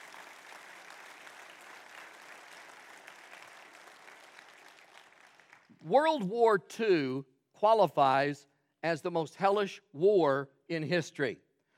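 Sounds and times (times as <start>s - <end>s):
audience applause: 0.0s - 5.7s
speech: 5.8s - 11.4s.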